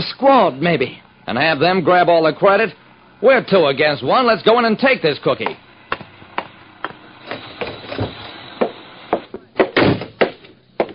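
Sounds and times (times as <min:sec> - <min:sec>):
speech: 0:00.0 - 0:05.6
wooden clunks and thumps: 0:05.4 - 0:10.9
apartment hall door opening: 0:07.2 - 0:10.2.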